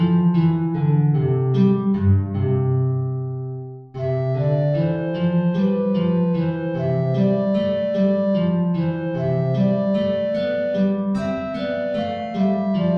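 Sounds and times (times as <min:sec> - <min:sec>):
guitar playing an aria: 0:00.0 - 0:12.9
alto flute playing an aria: 0:04.0 - 0:12.9.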